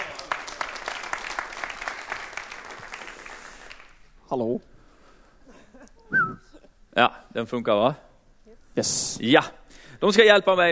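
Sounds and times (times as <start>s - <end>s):
audience clapping: 0.0s - 4.2s
speech: 4.3s - 4.7s, 6.1s - 8.0s, 8.8s - 10.6s.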